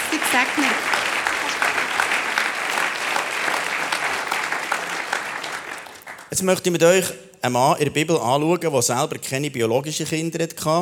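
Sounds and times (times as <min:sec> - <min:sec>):
audience applause: 0:00.0 - 0:06.5
speech: 0:00.3 - 0:01.0, 0:06.3 - 0:10.7.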